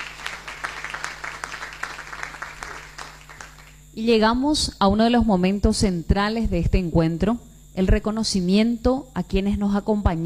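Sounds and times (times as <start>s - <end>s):
audience applause: 0.0s - 3.8s
speech: 4.0s - 10.2s.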